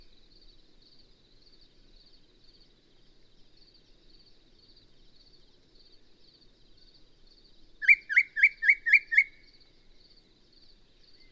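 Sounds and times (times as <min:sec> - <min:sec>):
Yellow-breasted Chat song: 0:07.8 - 0:09.5.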